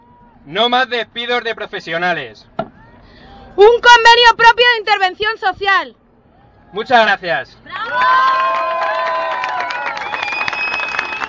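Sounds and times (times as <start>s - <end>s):
speech: 0.4s - 2.5s, 3.6s - 6.0s, 6.7s - 9.0s
crowd cheering and shouting at a Madrid rally of social workers: 7.7s - 11.2s.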